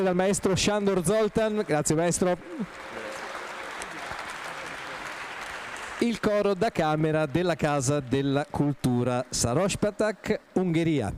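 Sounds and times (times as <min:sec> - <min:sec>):
speech: 0:00.0 - 0:03.0, 0:06.0 - 0:11.1
audience applause for a choir: 0:01.9 - 0:09.4.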